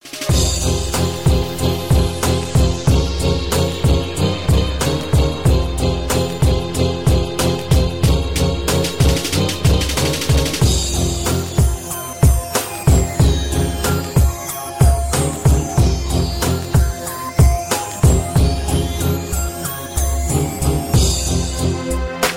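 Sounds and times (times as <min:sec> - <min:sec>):
hip hop beat: 0:00.0 - 0:22.3.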